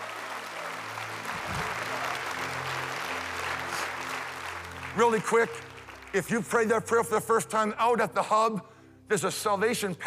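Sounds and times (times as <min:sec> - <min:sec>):
audience applause: 0:00.0 - 0:06.3
speech: 0:05.0 - 0:10.0.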